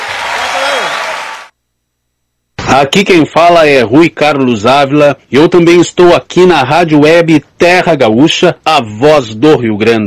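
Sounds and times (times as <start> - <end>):
applause for a performer on a radio show: 0.0 - 1.5
speech: 2.8 - 10.0.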